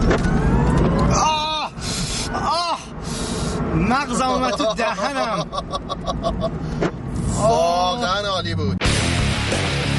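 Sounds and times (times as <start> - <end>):
car engine roaring while accelerating hard during test drive: 0.0 - 4.2, 5.7 - 9.9
speech: 3.9 - 9.6.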